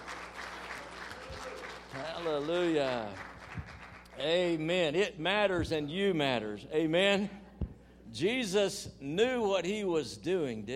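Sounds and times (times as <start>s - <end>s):
audience applauding children: 0.0s - 4.2s
speech: 2.0s - 3.4s, 4.2s - 7.4s, 8.1s - 10.7s.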